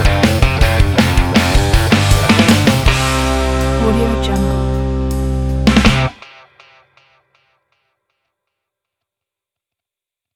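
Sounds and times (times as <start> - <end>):
country rock and roll music: 0.0 - 6.6.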